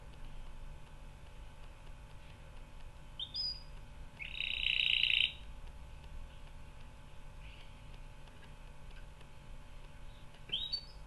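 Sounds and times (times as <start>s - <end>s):
steady background hiss: 0.0s - 11.0s
canary trilling: 3.2s - 5.4s, 10.1s - 11.0s.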